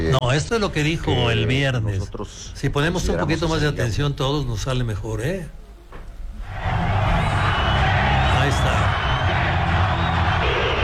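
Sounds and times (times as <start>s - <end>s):
speech: 0.1s - 5.6s
crowd booing: 6.4s - 10.8s.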